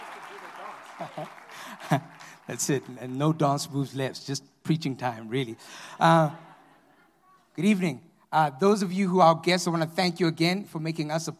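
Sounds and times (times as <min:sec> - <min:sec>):
laughter: 0:00.0 - 0:02.8, 0:06.0 - 0:07.2
audience applause: 0:00.0 - 0:03.6
speech: 0:01.0 - 0:06.5, 0:07.6 - 0:11.3.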